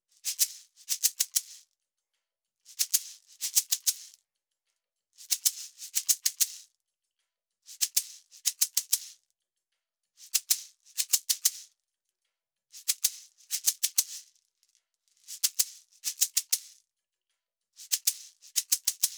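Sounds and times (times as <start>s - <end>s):
shaker: 0.1s - 1.8s, 2.6s - 4.3s, 5.2s - 6.8s, 7.6s - 9.3s, 10.2s - 11.8s, 12.7s - 16.9s, 17.8s - 19.1s.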